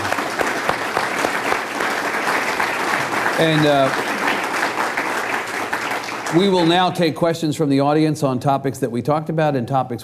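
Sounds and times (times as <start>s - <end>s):
audience applauding Chairman Sen. Kel Seliger at a live public conversation event: 0.0s - 7.1s
speech: 3.4s - 4.0s, 6.3s - 10.0s.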